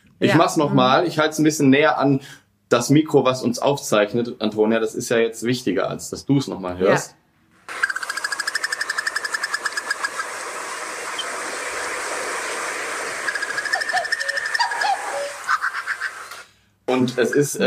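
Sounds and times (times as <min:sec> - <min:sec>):
speech: 0:00.2 - 0:07.8, 0:17.0 - 0:17.6
bird call resembling a raptor's cry: 0:07.7 - 0:10.3, 0:13.2 - 0:16.3.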